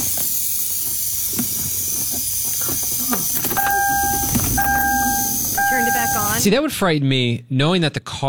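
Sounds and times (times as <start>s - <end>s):
steady airy hiss inside a switched-off car: 0.0s - 6.5s
thin high-pitched two-tone whine: 3.4s - 6.5s
speech: 6.4s - 8.2s.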